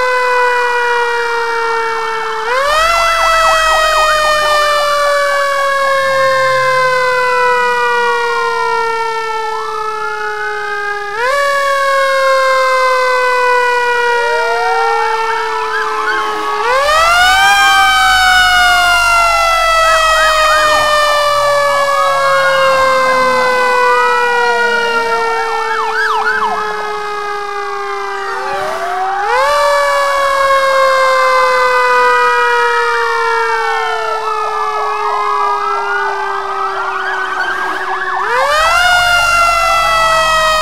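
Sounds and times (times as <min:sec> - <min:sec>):
fire truck siren: 0:00.0 - 0:40.5.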